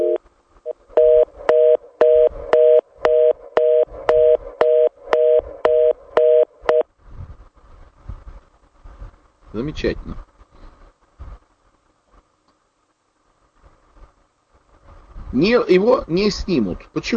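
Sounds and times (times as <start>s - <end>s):
telephone line beeps: 0.0s - 6.9s
faint low rumble: 0.0s - 17.1s
speech: 9.6s - 10.3s, 15.4s - 17.1s.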